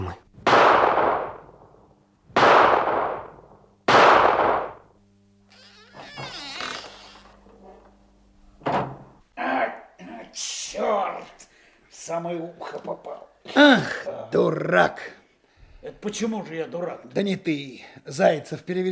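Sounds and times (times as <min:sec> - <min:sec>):
gunshots hitting a door: 0:00.4 - 0:01.5, 0:02.4 - 0:04.9
speech: 0:12.1 - 0:15.2, 0:15.8 - 0:18.8.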